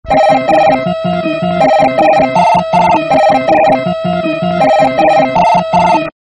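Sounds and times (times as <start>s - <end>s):
primitive melody: 0.1s - 6.2s.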